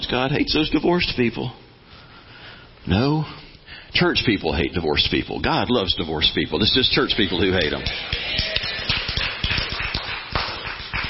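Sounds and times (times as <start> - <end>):
speech: 0.1 - 1.6, 2.8 - 8.6
audience clapping: 7.3 - 11.0.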